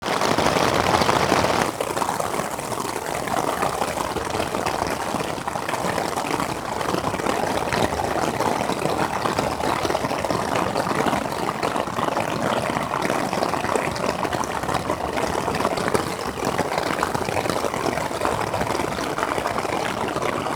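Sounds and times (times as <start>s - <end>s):
rain on a tent: 0.0s - 20.5s.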